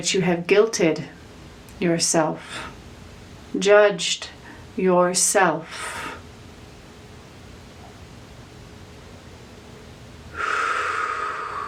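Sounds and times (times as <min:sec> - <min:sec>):
speech: 0:00.0 - 0:01.2, 0:01.8 - 0:02.8, 0:03.5 - 0:06.2
deep breath during a guided self-love meditation: 0:10.3 - 0:11.6.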